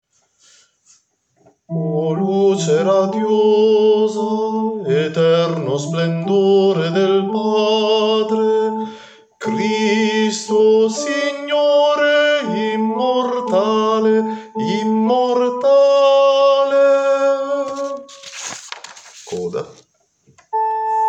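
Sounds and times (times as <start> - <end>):
tenors singing: 1.7 - 18.1.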